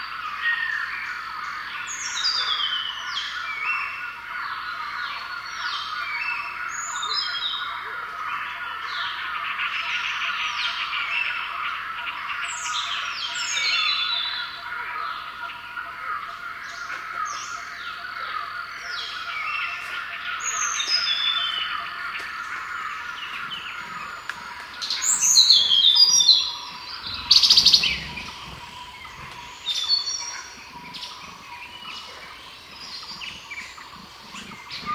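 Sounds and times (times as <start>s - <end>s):
Thai rainforest ambience: 0.0s - 34.9s.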